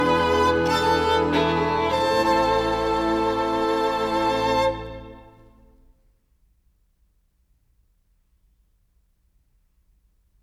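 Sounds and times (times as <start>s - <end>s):
violin and orchestra playing a presto in A minor: 0.0s - 5.7s.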